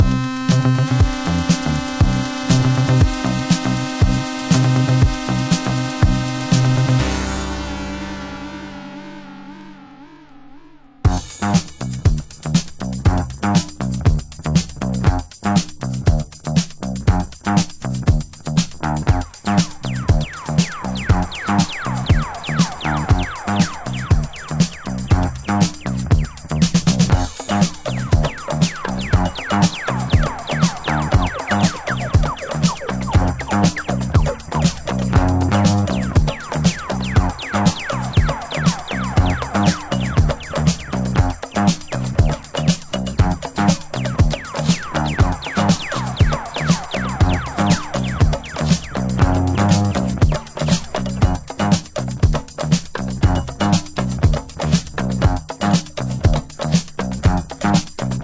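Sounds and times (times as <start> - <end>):
slap bass disco dub nu house music: 0.0 - 14.2, 15.0 - 58.2.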